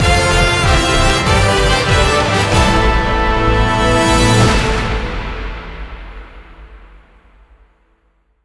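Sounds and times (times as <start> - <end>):
big win ending jingle: 0.0 - 6.0.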